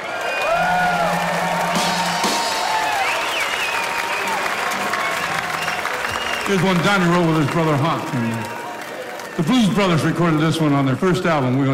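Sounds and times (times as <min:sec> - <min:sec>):
whoops and cheers: 0:00.0 - 0:06.5
crowd clapping for a performer: 0:00.0 - 0:11.7
speech: 0:06.5 - 0:08.6, 0:09.4 - 0:11.7.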